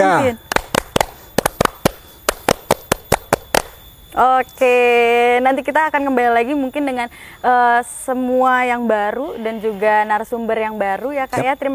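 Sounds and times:
speech: 0.0 - 0.4, 4.2 - 11.7
scout rhythmic clapping: 0.4 - 3.8.

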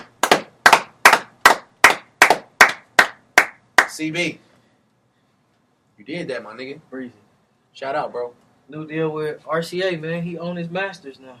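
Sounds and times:
hand claps: 0.0 - 4.0
speech: 4.0 - 4.5, 6.0 - 7.2, 7.8 - 11.3.

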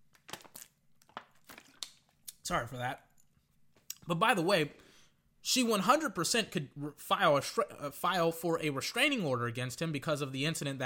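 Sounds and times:
plastic water bottle crinkling during a swig: 0.0 - 2.3
speech: 2.5 - 3.1, 4.1 - 4.8, 5.4 - 10.8.

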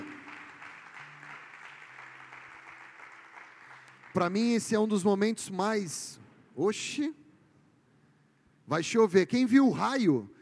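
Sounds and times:
audience applauding: 0.0 - 4.6
speech: 4.2 - 7.2, 8.7 - 10.4.

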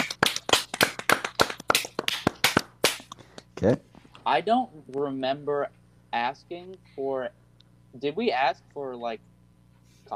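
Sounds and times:
round of applause from a small group: 0.0 - 3.5
speech: 3.6 - 9.3.

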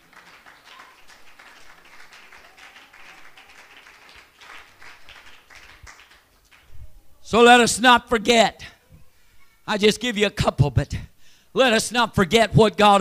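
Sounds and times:
crowd clapping in a large room: 0.0 - 6.7
speech: 7.3 - 8.7, 9.7 - 13.0.

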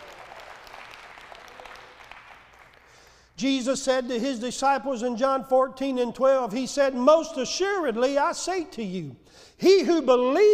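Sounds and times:
audience clapping hands in praise: 0.0 - 3.4
speech: 3.4 - 10.5.

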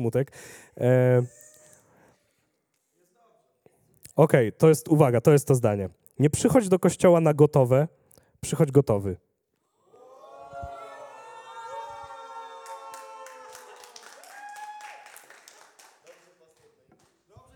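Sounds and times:
speech: 0.0 - 1.4, 4.2 - 9.2
audience applause: 10.8 - 17.5.

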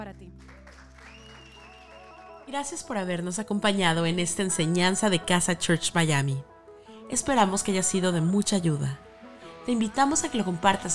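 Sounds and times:
audience applause: 0.4 - 2.5
speech: 2.5 - 6.5, 7.1 - 10.9.

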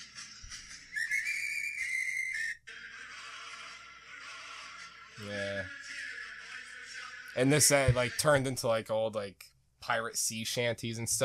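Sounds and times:
whistled melody of an old Civil War song: 0.7 - 2.7
speech: 5.2 - 5.8, 7.4 - 11.2.

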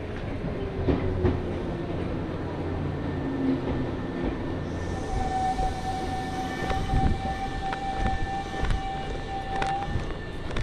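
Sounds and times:
train wheels and motor rumble: 0.0 - 10.6
rail clicks and knocks: 0.1 - 2.2, 6.6 - 10.6.

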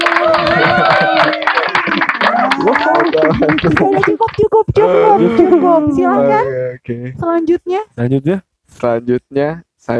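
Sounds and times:
applause: 0.0 - 4.6
laughter: 0.1 - 6.8
speech: 3.4 - 9.9.

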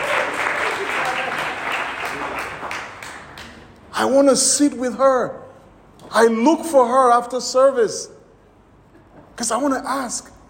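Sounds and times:
audience applause: 0.0 - 3.6
speech: 4.0 - 5.4, 6.1 - 8.1, 9.4 - 10.3.

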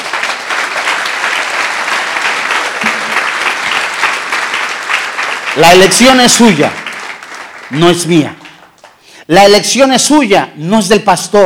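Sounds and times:
large crowd applause in a reverberant room: 0.0 - 9.0
speech: 5.6 - 6.9, 7.7 - 8.4, 9.3 - 11.4.

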